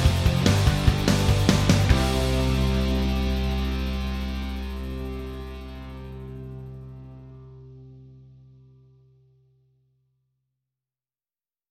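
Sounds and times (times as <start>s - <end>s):
rock backing without melody: 0.0s - 8.5s.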